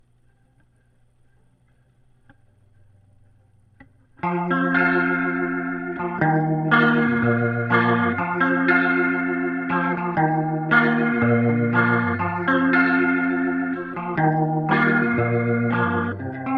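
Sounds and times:
guitar through Leslie rotary speaker: 0.0s - 16.5s.

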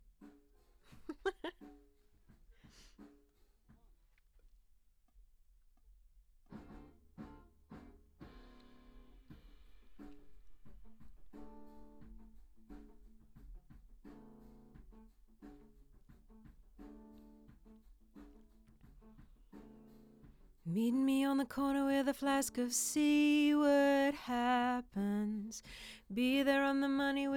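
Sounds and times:
lead vocal on an SM7 microphone: 20.7s - 27.3s.

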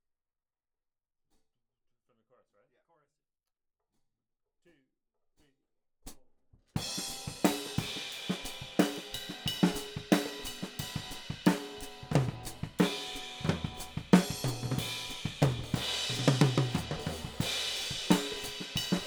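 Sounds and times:
hi-hat: 6.8s - 19.0s.

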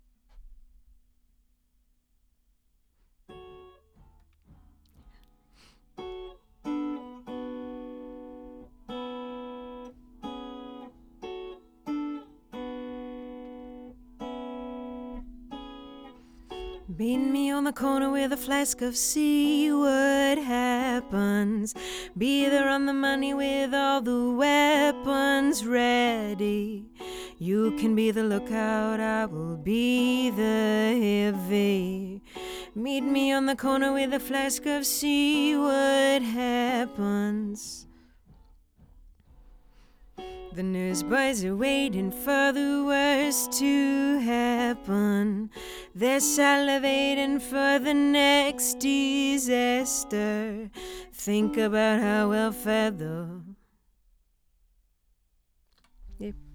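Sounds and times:
lead vocal on an SM7 microphone: 16.8s - 37.9s, 40.4s - 53.6s.

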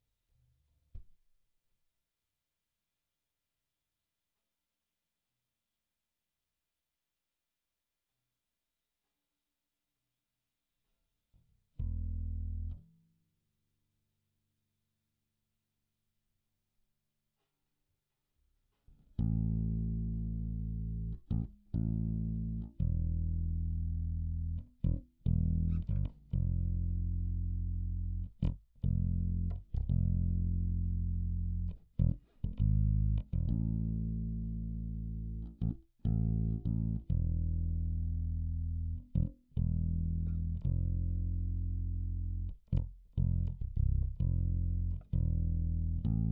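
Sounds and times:
bass guitar recorded by direct input: 11.8s - 13.0s, 19.0s - 46.3s.

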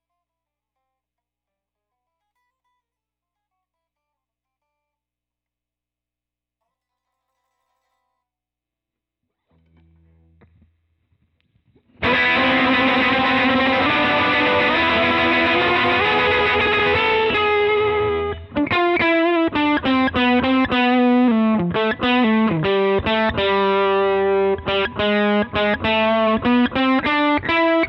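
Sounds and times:
guitar solo: 12.0s - 27.8s.

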